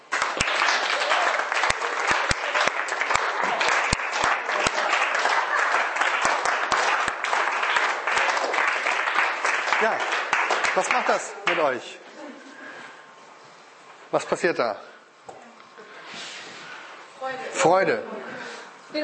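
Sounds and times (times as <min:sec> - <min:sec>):
audience clapping hands: 0:00.0 - 0:11.9
speech: 0:10.8 - 0:12.0, 0:14.1 - 0:14.9, 0:17.3 - 0:19.0.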